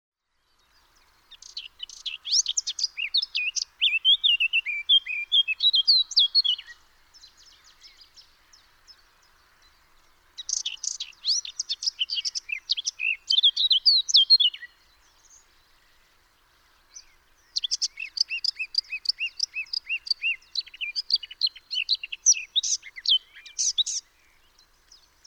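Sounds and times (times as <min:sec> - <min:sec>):
Eurasian blackcap singing: 0:01.3 - 0:06.8, 0:10.4 - 0:14.8, 0:17.0 - 0:24.1.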